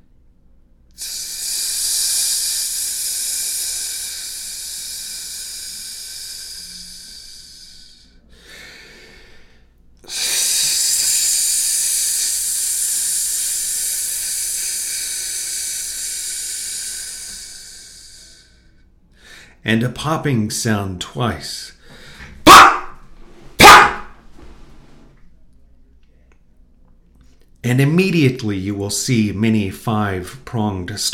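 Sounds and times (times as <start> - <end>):
hissing sound made by voice: 1.0 - 8.6, 10.1 - 18.7
speech: 19.7 - 21.8, 27.7 - 31.1.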